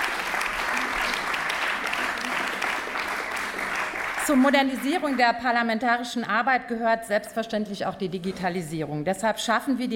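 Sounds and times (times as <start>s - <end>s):
applause in parliament: 0.0s - 5.6s
speech: 4.3s - 9.9s.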